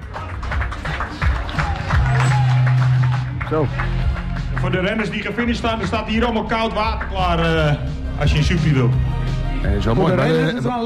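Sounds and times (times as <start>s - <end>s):
crowd applauding a runner finishing a race: 0.0s - 7.7s
speech: 3.5s - 4.0s, 4.6s - 10.8s.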